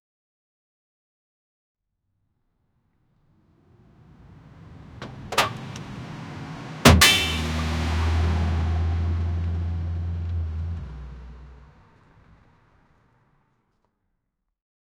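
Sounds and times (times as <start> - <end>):
car crash: 3.8 - 13.0.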